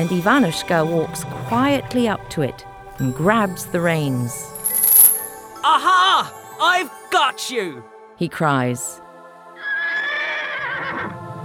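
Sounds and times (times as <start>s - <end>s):
speech: 0.0s - 4.5s, 5.6s - 9.0s
horse neighing: 9.6s - 11.1s.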